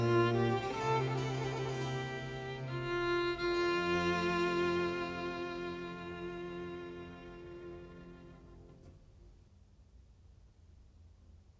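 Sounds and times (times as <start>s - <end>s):
slow violin sonata prelude: 0.0s - 9.0s.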